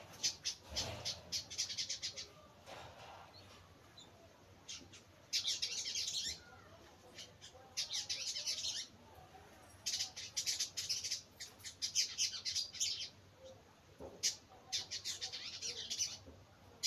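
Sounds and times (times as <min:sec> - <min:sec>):
birds chirping: 0:00.0 - 0:16.8.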